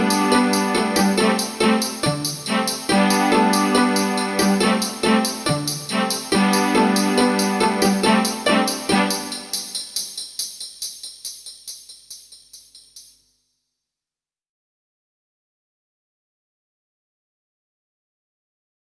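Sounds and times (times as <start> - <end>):
karaoke backing track: 0.0 - 9.7.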